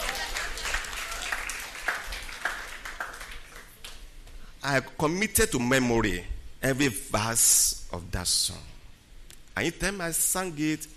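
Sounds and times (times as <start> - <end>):
audience applause: 0.0 - 4.0
speech: 4.6 - 8.7, 9.6 - 10.9.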